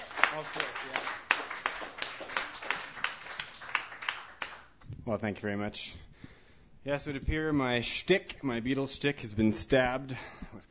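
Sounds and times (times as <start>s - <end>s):
sparse clapping from an open mic audience: 0.0s - 4.8s
speech: 0.4s - 1.5s, 5.0s - 6.1s, 6.8s - 10.6s.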